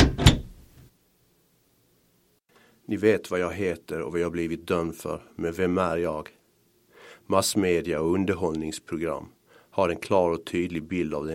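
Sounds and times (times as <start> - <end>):
door opening or closing: 0.0 - 0.6
speech: 2.9 - 6.4, 7.3 - 11.3.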